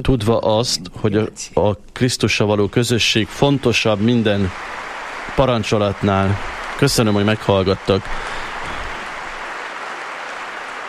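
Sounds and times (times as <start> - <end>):
speech: 0.0 - 8.4
pilgrims in the Paul VI audience hall applauding Pope Francis: 3.0 - 10.8.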